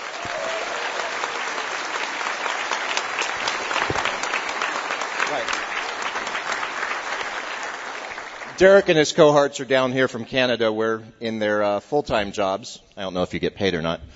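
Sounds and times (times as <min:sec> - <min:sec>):
audience round of applause: 0:00.0 - 0:08.8
speech: 0:08.6 - 0:14.1.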